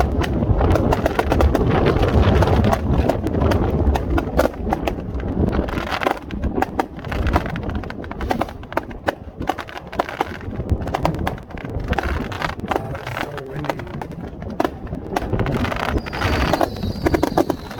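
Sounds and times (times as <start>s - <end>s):
New Year's Eve fireworks show in Wasilla Alaska crackling and popping: 0.0s - 17.7s
faint fireworks whistle: 15.9s - 17.7s.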